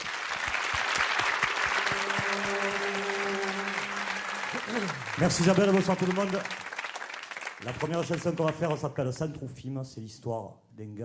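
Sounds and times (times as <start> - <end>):
audience applause: 0.0 - 8.8
speech: 5.2 - 6.6, 7.6 - 11.0.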